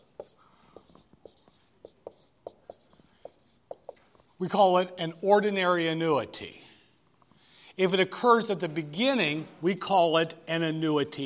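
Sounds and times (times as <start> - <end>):
writing on a board during a lecture: 0.0 - 4.7
speech: 4.4 - 6.6, 7.8 - 11.2.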